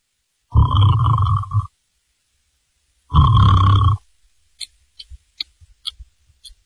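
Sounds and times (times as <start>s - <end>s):
voice imitating snoring: 0.5s - 1.7s, 3.1s - 4.0s.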